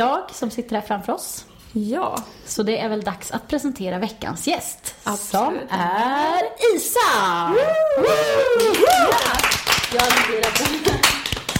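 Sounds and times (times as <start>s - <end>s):
speech: 0.0s - 11.2s
voices whooping and calling out: 7.3s - 9.4s
studio guests clapping hands: 8.1s - 11.5s.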